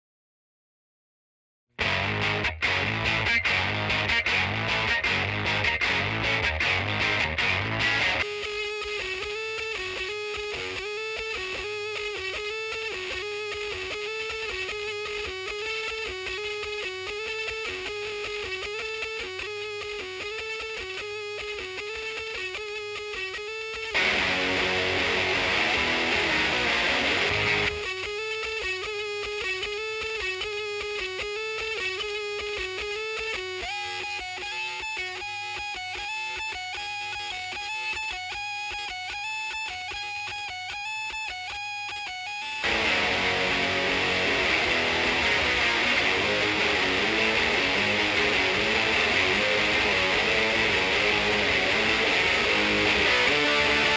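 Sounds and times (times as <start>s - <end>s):
guitar: 1.8s - 53.9s.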